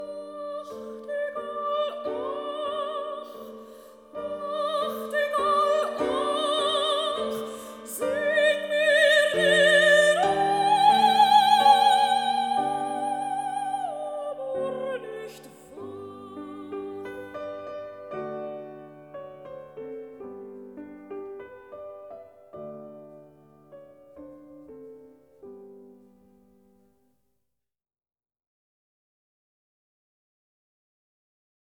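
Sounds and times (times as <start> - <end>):
person singing: 0.0 - 17.7
piano: 0.0 - 27.0.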